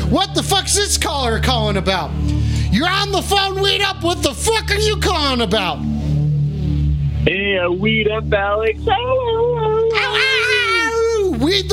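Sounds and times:
speech: 0.1s - 5.9s, 7.3s - 9.5s, 11.4s - 11.6s
person imitating dog howl: 9.9s - 11.1s.

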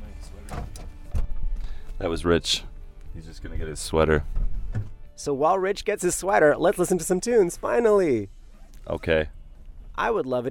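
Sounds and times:
speech: 2.0s - 9.4s, 10.0s - 10.5s
knocking on a van door: 4.3s - 5.0s.

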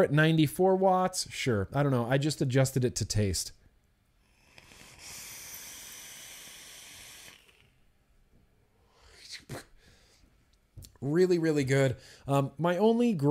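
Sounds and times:
speech: 0.0s - 3.6s, 11.0s - 13.3s
vaping on a single coil atomizer: 4.2s - 7.9s.

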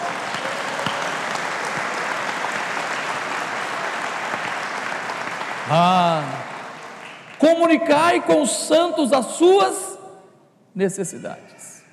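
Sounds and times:
audience applauding: 0.0s - 7.6s
speech: 5.7s - 6.4s, 7.4s - 9.8s, 10.8s - 11.6s.

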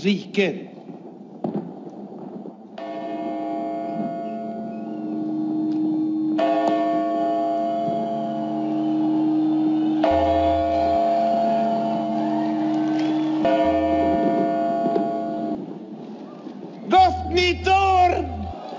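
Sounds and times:
speech: 0.0s - 0.7s
church bells ringing in a classic Swedish New Year TV broadcast: 2.8s - 15.8s, 16.9s - 18.6s.

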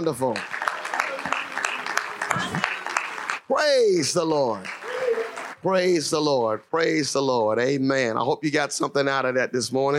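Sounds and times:
speech: 0.0s - 0.6s, 2.3s - 2.8s, 3.5s - 4.8s, 5.6s - 9.9s
audience hand clap of praise: 0.0s - 6.0s.

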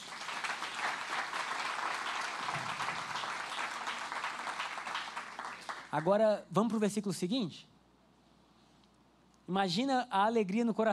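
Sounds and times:
audience applauding: 0.0s - 6.1s
speech: 5.9s - 7.7s, 9.5s - 10.9s.

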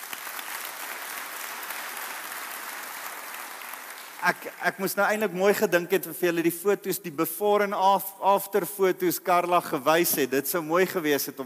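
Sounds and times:
audience applauding: 0.0s - 4.6s
speech: 4.2s - 11.4s.

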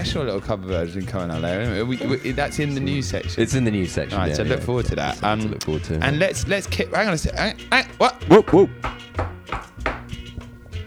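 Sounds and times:
laughter: 0.0s - 9.2s
speech: 0.0s - 9.6s
knocking on a door: 8.2s - 10.2s.

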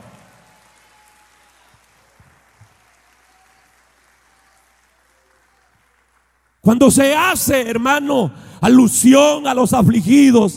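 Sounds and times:
audience applause: 0.0s - 6.6s
speech: 6.6s - 10.5s.

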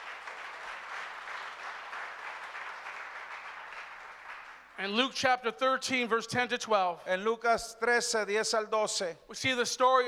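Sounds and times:
crowd applauding: 0.0s - 4.8s
speech: 4.8s - 10.0s.

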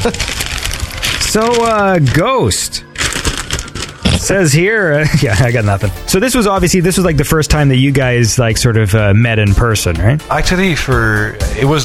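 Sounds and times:
speech: 0.0s - 0.4s, 1.3s - 2.9s, 4.2s - 11.8s
papers shuffling: 0.0s - 4.6s.

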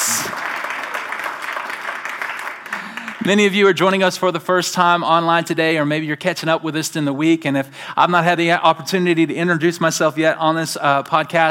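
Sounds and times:
church congregation in a civic center applauding: 0.0s - 3.8s
speech: 3.2s - 11.4s.

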